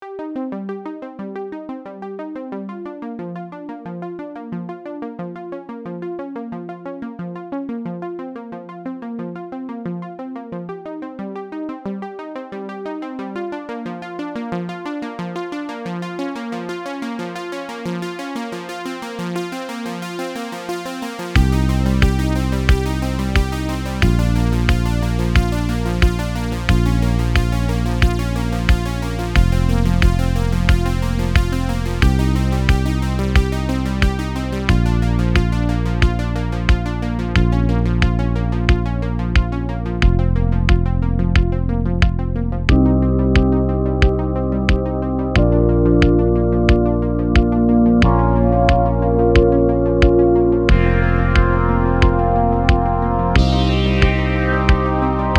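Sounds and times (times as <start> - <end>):
analog synth waves: 19.9 - 55.3.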